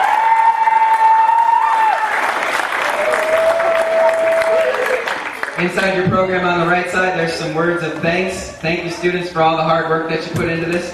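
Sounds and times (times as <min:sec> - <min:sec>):
audience applause: 0:00.0 - 0:06.0
speech: 0:05.6 - 0:10.9.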